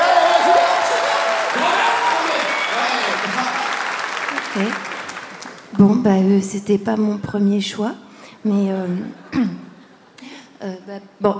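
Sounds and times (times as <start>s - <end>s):
audience applause: 0.0s - 5.7s
speech: 5.8s - 9.6s, 10.6s - 11.3s.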